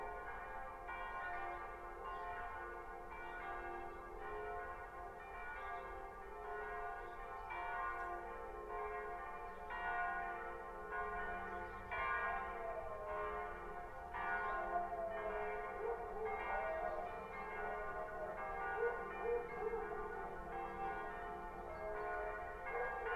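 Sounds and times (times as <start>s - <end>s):
Sunday church bells ringing: 0.0s - 23.1s.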